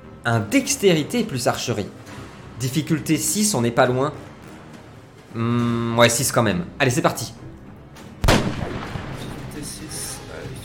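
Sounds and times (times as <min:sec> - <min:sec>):
speech: 0:00.2 - 0:04.3, 0:05.3 - 0:07.4
pistol gunshot sound effect in a tabletop role-playing game: 0:08.2 - 0:09.5.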